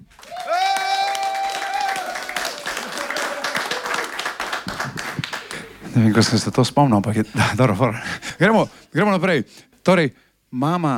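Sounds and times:
audience applause for band: 0.0s - 5.8s
speech: 6.0s - 10.9s.

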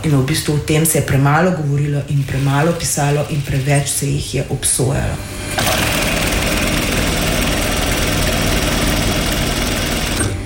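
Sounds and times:
speech: 0.0s - 6.0s
sewing machine running in a sewing studio: 2.0s - 4.3s, 5.2s - 10.4s.

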